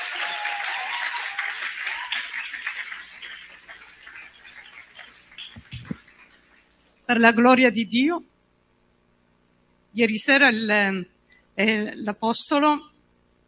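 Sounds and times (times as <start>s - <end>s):
audience applause: 0.0s - 6.6s
speech: 7.1s - 8.3s, 10.0s - 12.9s.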